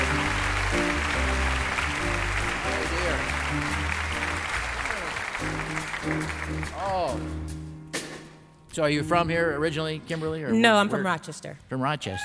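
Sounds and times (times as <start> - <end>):
audience applause: 0.0 - 7.1
speech: 6.8 - 7.6, 8.8 - 12.2.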